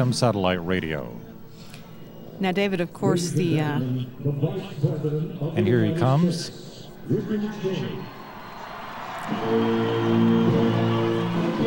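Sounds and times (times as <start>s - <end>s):
speech: 0.0s - 1.3s, 2.4s - 8.2s, 9.3s - 11.0s
crowd cheering: 6.8s - 11.6s.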